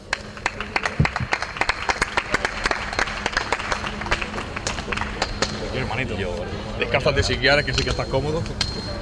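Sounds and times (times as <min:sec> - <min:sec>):
audience applause: 0:00.0 - 0:05.7
speech: 0:06.0 - 0:08.9.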